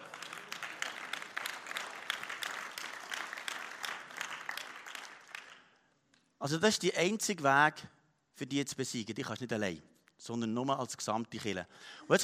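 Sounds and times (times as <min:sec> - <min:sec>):
audience applause: 0:00.0 - 0:05.7
speech: 0:06.4 - 0:12.2.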